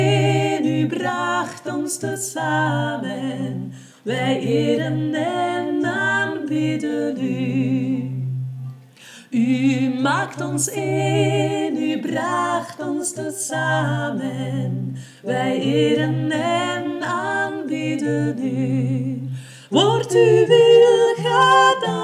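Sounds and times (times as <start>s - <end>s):
tutti sopranos singing together: 0.0s - 22.0s.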